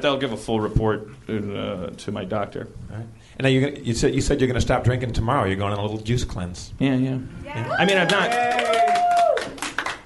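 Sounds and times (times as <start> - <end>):
speech: 0.0 - 9.0
scattered applause: 7.7 - 10.0.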